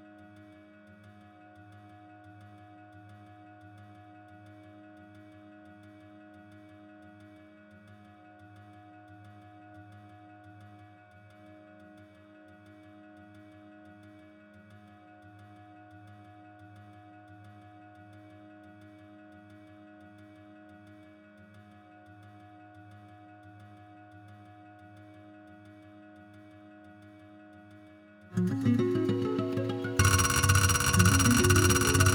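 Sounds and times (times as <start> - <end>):
acoustic guitar: 28.4 - 32.1.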